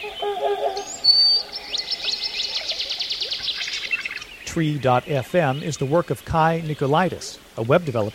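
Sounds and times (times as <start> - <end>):
bird trilling in a forest in Denali National Park, Alaska: 0.0 - 4.4
birds chirping in a forest in Denali National Park, Alaska: 0.0 - 8.1
speech: 4.6 - 8.1.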